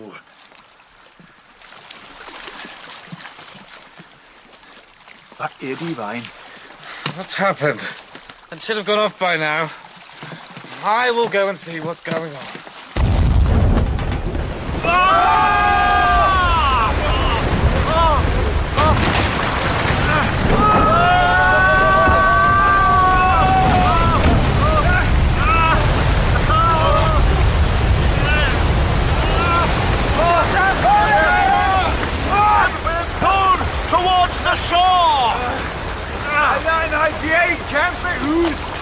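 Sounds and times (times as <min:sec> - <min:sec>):
rushing sea water: 0:00.0 - 0:38.8
speech: 0:05.4 - 0:06.4, 0:07.2 - 0:09.8, 0:10.8 - 0:12.6
crashing waves: 0:12.8 - 0:38.8.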